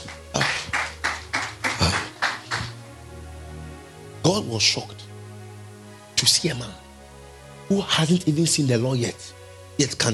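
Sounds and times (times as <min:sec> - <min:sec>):
church audience clapping hands: 0:00.0 - 0:02.9
speech: 0:04.3 - 0:05.0, 0:06.2 - 0:06.8, 0:07.7 - 0:10.1.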